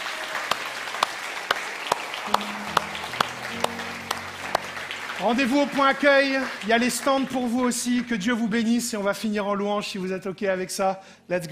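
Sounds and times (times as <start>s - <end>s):
audience applauding: 0.0s - 8.6s
speech: 5.2s - 11.5s.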